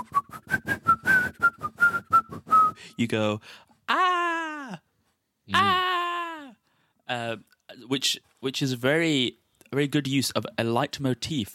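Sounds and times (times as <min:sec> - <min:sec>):
murderer in a film whistling a tune: 0:00.0 - 0:03.0
speech: 0:03.0 - 0:03.7, 0:05.5 - 0:05.8, 0:07.1 - 0:11.5.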